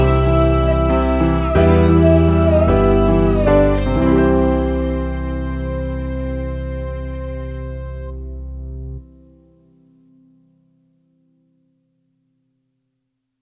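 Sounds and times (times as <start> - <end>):
instrumental music: 0.0 - 10.6.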